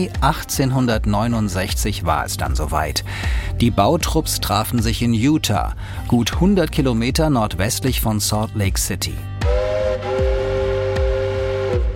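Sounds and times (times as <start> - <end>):
speech: 0.0 - 9.3
steam locomotive whistle: 9.4 - 11.9.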